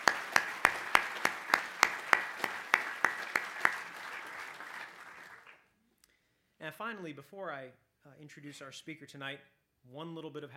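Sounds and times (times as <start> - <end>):
audience applause: 0.0 - 5.6
speech: 6.8 - 10.5.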